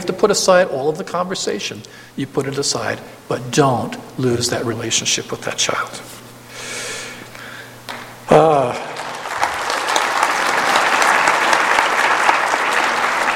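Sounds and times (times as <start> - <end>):
speech: 0.0 - 6.2, 8.3 - 8.9
audience applause: 8.3 - 13.3.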